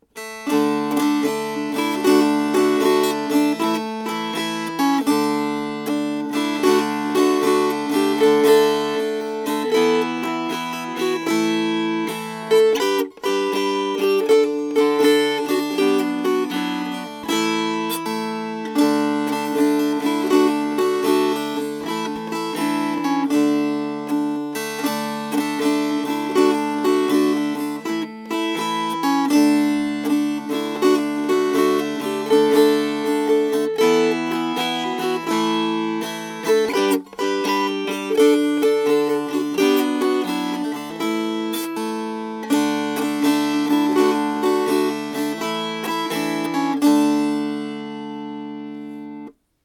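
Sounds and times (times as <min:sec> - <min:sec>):
strummed strings: 0:00.0 - 0:49.6.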